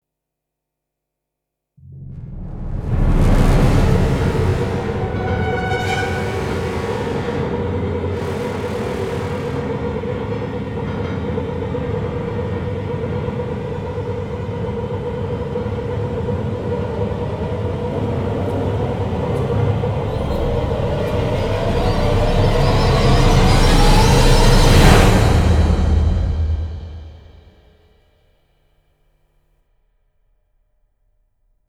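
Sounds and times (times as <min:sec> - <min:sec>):
choir singing: 0:02.9 - 0:27.2.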